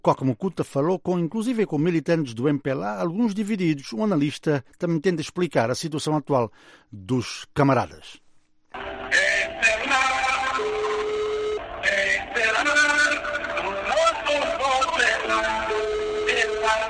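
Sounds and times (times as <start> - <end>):
speech: 0.0 - 8.2
song with singing playing as a mobile phone ringback tone: 8.8 - 16.8.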